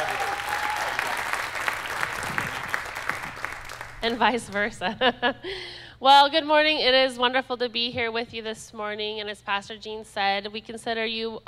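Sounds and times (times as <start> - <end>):
crowd applauding: 0.0 - 4.6
speech: 4.0 - 11.4.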